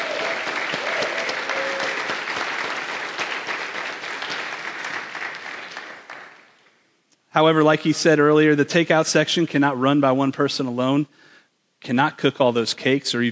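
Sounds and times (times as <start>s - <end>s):
audience giving a round of applause: 0.0s - 6.6s
speech: 7.4s - 13.3s.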